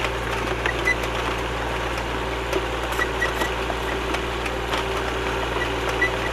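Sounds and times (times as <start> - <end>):
spike wheel: 0.1 - 1.2, 1.9 - 6.3.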